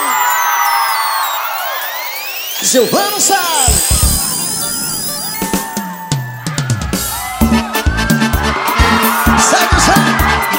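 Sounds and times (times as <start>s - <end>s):
whistles: 0.0s - 6.7s
concert crowd in São Luís shouting and cheering: 0.0s - 10.5s
speech: 2.7s - 4.1s.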